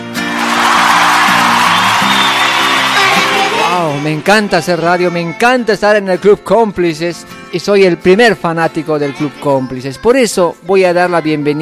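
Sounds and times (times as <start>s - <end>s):
applause for children: 0.2s - 4.4s
speech: 4.1s - 11.6s.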